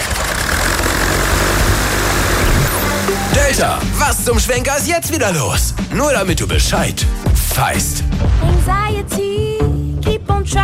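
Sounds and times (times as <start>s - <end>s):
medical cargo drone engine and propeller buzz flying overhead: 0.0s - 4.0s
speech: 3.4s - 9.8s.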